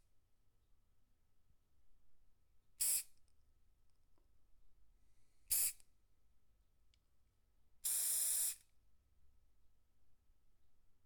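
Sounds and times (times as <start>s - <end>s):
spray can short spray: 2.8s - 3.0s, 5.5s - 5.7s, 7.8s - 8.6s.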